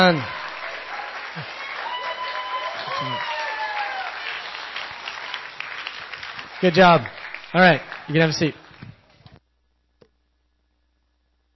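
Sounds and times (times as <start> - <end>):
speech: 0.0 - 0.4, 1.4 - 1.6, 3.0 - 3.3, 6.6 - 8.6
cheers and whistles: 0.0 - 5.5
audience applause: 0.0 - 9.2.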